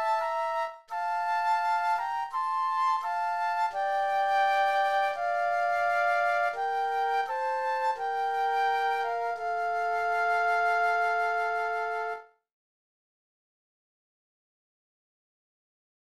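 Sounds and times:
flute duet: 0.0 - 12.4.

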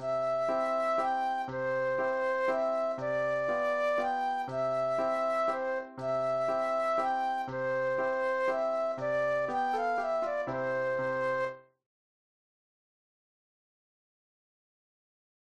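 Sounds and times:
solo flute classical piece: 0.0 - 11.8.

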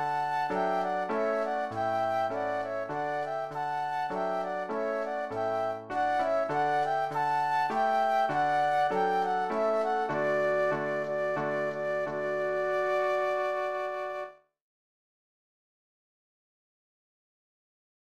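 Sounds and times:
flute duet: 0.0 - 14.4
piano: 0.0 - 14.4.

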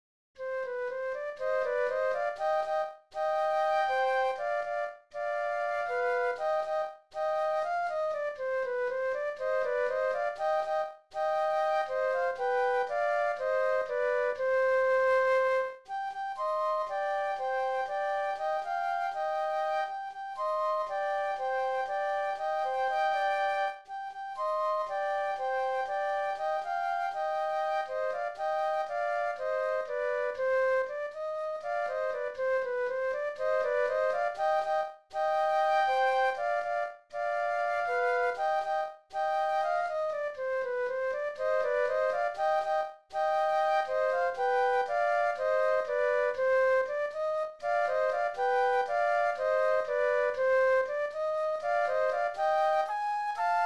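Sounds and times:
flute duet: 0.4 - 53.6.

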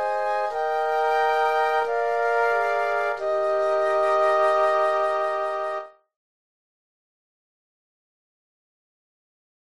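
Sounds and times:
flute quartet: 0.0 - 6.0.

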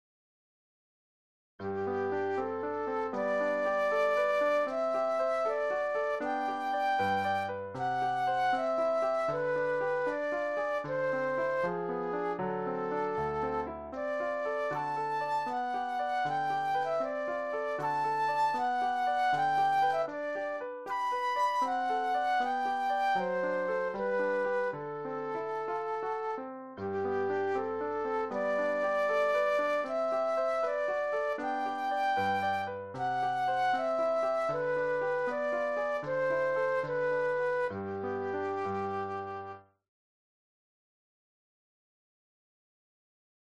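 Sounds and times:
flute solo: 1.7 - 39.6.

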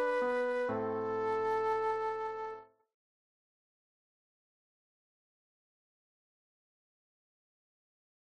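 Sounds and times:
classical aria flute solo: 0.0 - 2.7.

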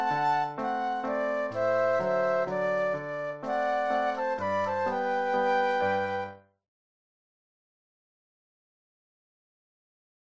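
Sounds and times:
flute duet: 0.0 - 6.5
piano: 0.0 - 6.6.

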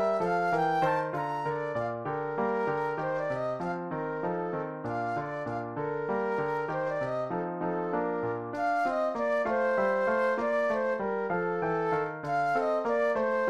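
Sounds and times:
solo flute playing a classical German dance: 0.0 - 13.4.

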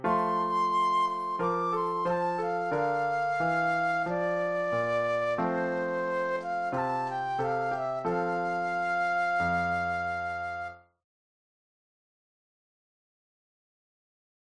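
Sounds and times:
flute solo: 0.0 - 10.9.

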